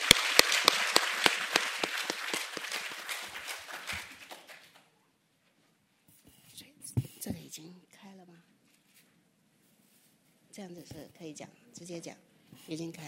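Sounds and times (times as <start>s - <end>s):
audience applause welcoming speaker: 0.0s - 4.9s
speech: 10.6s - 13.0s.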